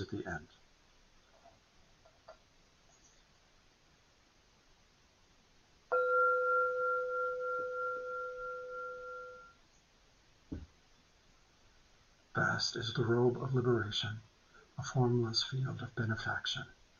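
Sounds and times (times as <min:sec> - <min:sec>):
speech: 0:00.0 - 0:00.6, 0:12.4 - 0:16.8
meditation bell ringing: 0:05.9 - 0:09.6.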